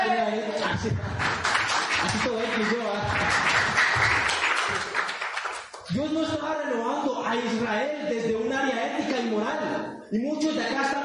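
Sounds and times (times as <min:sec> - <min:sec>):
speech: 0:00.7 - 0:01.4, 0:02.0 - 0:03.6, 0:05.9 - 0:11.0
audience applause: 0:01.1 - 0:05.9.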